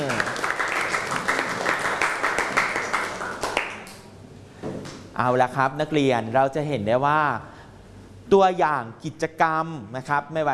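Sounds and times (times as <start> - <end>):
students clapping hands in a classroom: 0.0 - 4.1
speech: 5.2 - 7.5, 8.3 - 10.5.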